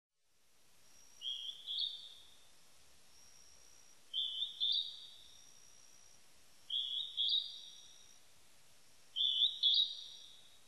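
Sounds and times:
Northern hawk-cuckoo giving high two-note phrases: 1.2 - 2.2, 4.1 - 5.2, 6.7 - 7.8, 9.2 - 10.4.

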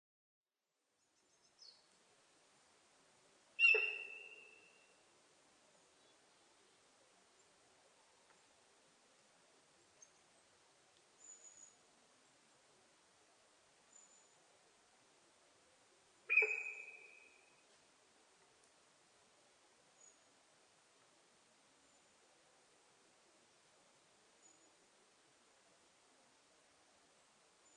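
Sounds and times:
sika deer whistle call: 3.6 - 4.8, 16.3 - 17.4.

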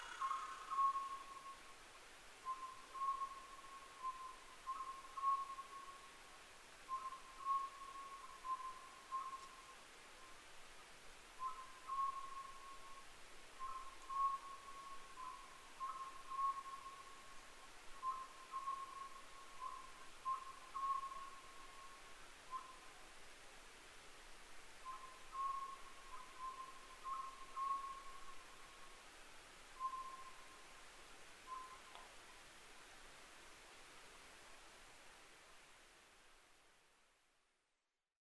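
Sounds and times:
Oriental scops owl whistled notes: 0.0 - 1.6, 2.5 - 6.0, 6.9 - 9.5, 11.4 - 12.8, 13.6 - 17.1, 18.0 - 21.4, 24.8 - 28.3, 29.8 - 30.4, 31.5 - 31.9
soft background hiss: 0.0 - 37.9.

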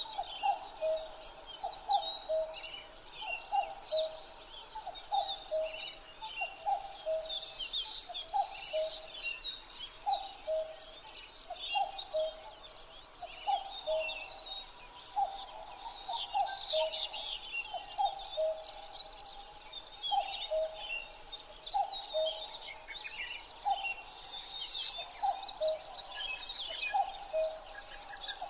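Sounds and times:
common cuckoo calling: 0.0 - 2.6, 3.2 - 7.4, 10.0 - 10.9, 13.3 - 19.0, 20.1 - 21.1, 21.7 - 28.4
dense dawn chorus of songbirds: 0.0 - 28.4.

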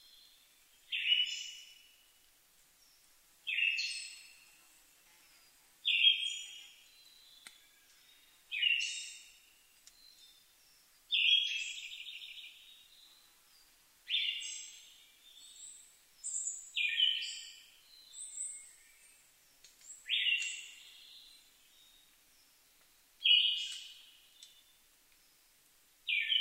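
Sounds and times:
Siberian thrush whistled song: 0.9 - 1.8, 5.9 - 10.4, 11.1 - 13.2, 14.1 - 19.2, 19.9 - 22.1, 23.2 - 25.4, 26.1 - 26.3.

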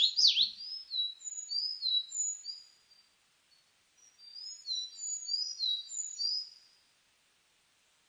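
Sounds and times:
Sakhalin leaf warbler song: 0.0 - 7.0.

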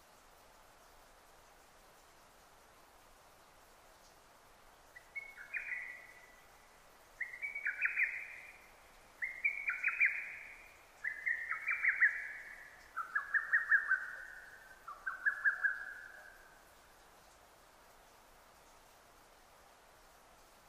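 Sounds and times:
soft hiss: 0.0 - 20.6
lesser cuckoo calling: 5.0 - 6.4, 7.2 - 16.6.

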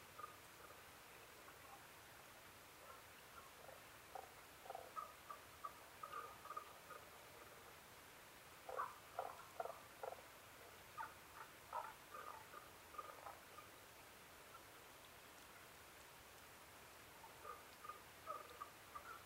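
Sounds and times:
steady background hiss: 0.0 - 19.2
Tago's brown frog croaking: 0.2 - 0.8, 2.8 - 7.7, 8.6 - 13.8, 17.1 - 19.2.

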